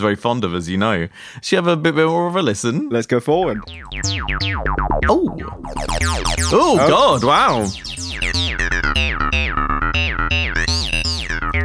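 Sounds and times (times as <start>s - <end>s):
speech: 0.0s - 9.7s
late-90s early-2000s style soft synth with pitch and wavetable shape changed: 3.4s - 11.6s.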